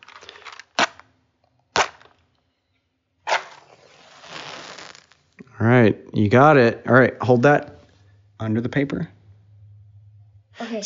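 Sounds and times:
match being struck and lit: 0:03.3 - 0:05.2
speech: 0:05.6 - 0:07.7, 0:08.4 - 0:09.2.

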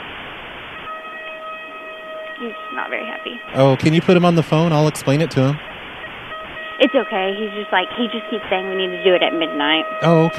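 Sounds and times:
alarm being tested: 0:00.8 - 0:10.3
speech: 0:02.4 - 0:05.7, 0:06.8 - 0:10.3
laughter: 0:03.6 - 0:05.6.

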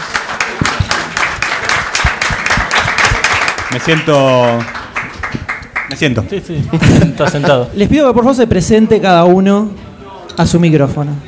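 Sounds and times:
audience applause: 0:00.0 - 0:06.3
speech: 0:03.7 - 0:04.8, 0:05.9 - 0:09.8, 0:10.4 - 0:11.2.

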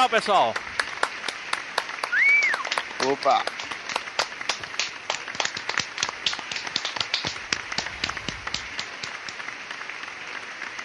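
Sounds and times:
speech: 0:00.0 - 0:00.7, 0:03.0 - 0:03.5
light scattered applause: 0:00.0 - 0:10.8
high whistle-like tone: 0:02.1 - 0:02.6.

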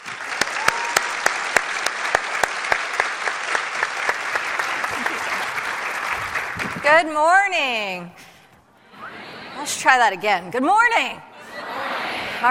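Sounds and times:
sharp individual claps: 0:00.0 - 0:06.9
audience applause welcoming a leadership speaker: 0:00.0 - 0:07.0
speech: 0:06.9 - 0:08.3, 0:09.6 - 0:11.3.

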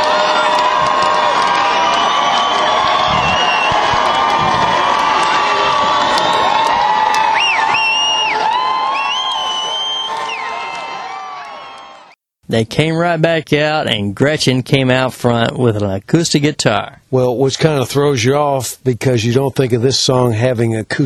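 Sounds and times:
large concert crowd cheering for an encore: 0:00.0 - 0:12.2
whoops and whistles: 0:00.8 - 0:12.1
speech: 0:12.5 - 0:21.0.

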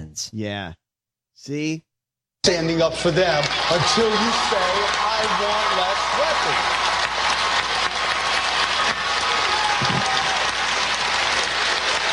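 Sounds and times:
speech: 0:00.2 - 0:00.8, 0:01.4 - 0:06.9
standing ovation applause: 0:03.0 - 0:12.1.

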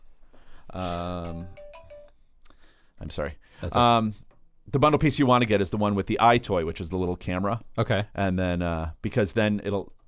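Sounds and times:
speech: 0:00.8 - 0:01.6, 0:03.0 - 0:10.0
mobile phone ringtone going off in an audience: 0:01.2 - 0:02.2.

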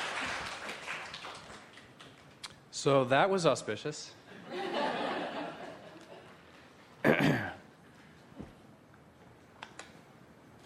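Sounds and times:
audience round of applause: 0:00.0 - 0:02.2
speech: 0:02.8 - 0:04.2
laughter: 0:04.3 - 0:06.4.

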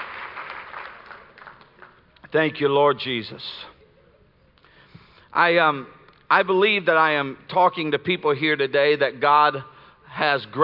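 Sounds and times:
audience clapping hands: 0:00.0 - 0:02.3
speech: 0:02.3 - 0:03.7, 0:05.4 - 0:10.6.

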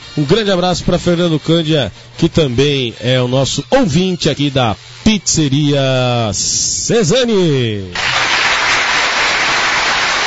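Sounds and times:
speech: 0:00.2 - 0:08.3
applause: 0:08.0 - 0:10.2.

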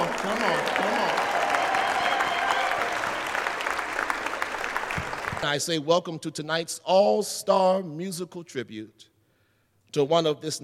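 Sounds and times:
audience applause: 0:00.0 - 0:05.5
speech: 0:05.4 - 0:09.1, 0:09.9 - 0:10.6.

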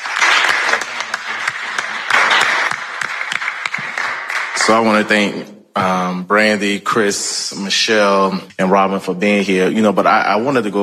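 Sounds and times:
audience applauding: 0:00.0 - 0:05.1
speech: 0:04.7 - 0:10.8.

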